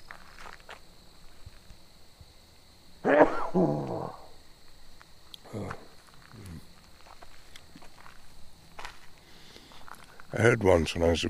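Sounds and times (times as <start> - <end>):
sneeze: 3.0 - 4.3
speech: 3.1 - 4.2, 10.4 - 11.2
breathy sounds: 5.4 - 6.7, 9.2 - 10.3.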